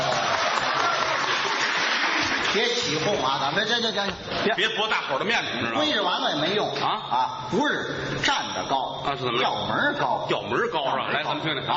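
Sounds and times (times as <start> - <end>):
audience applause at a live comedy performance: 0.0 - 3.0
speech: 2.5 - 11.7.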